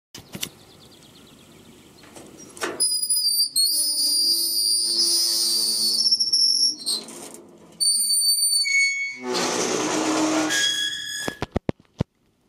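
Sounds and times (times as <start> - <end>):
gate: 2.0 - 11.6.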